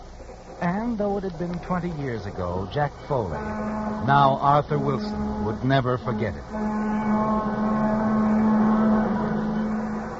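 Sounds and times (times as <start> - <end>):
speech: 0.6 - 8.0
train whistle wailing: 3.1 - 10.1.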